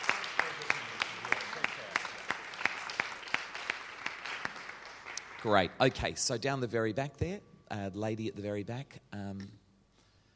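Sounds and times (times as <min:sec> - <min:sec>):
audience applause: 0:00.0 - 0:06.0
sharp bright claps: 0:00.0 - 0:06.2
speech: 0:05.4 - 0:09.6.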